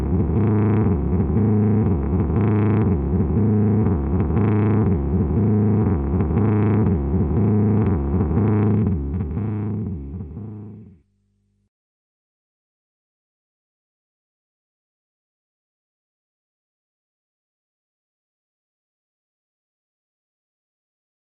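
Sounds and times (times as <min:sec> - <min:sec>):
electric guitar through Seymour Duncan Vapor Trail oscillating: 0:00.0 - 0:11.0.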